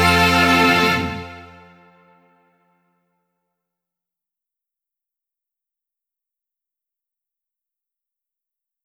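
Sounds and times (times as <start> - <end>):
off vocal instrumental music: 0.0 - 2.5.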